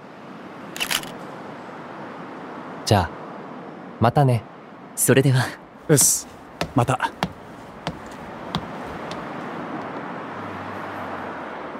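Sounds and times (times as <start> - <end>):
camera shutter click for a social-media photo: 0.8 - 1.2
speech: 2.9 - 3.2, 4.0 - 7.2.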